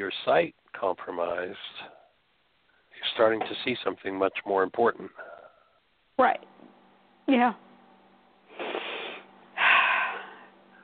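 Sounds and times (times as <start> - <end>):
speech: 0.0 - 2.0, 3.0 - 5.3, 6.2 - 6.5, 7.3 - 7.6
person taking a deep breath: 8.5 - 10.8.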